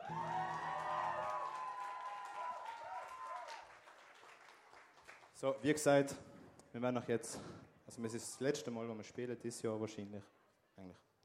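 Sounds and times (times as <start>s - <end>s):
people whooping: 0.0s - 3.7s
audience clapping and cheering: 0.0s - 5.5s
speech: 0.1s - 0.4s, 5.4s - 11.1s.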